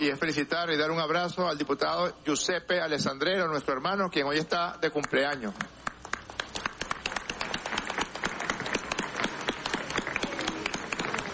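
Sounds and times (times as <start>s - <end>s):
speech: 0.0s - 5.8s
crowd applauding for a birthday: 5.6s - 11.3s.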